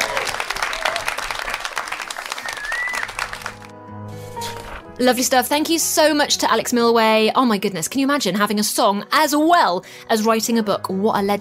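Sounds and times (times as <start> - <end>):
audience applause: 0.0 - 3.7
speech: 5.0 - 11.3.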